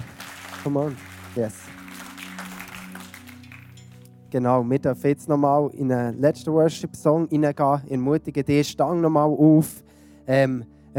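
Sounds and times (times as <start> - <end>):
steady applause from a crowd: 0.0 - 3.8
speech: 0.6 - 1.8, 4.3 - 10.9.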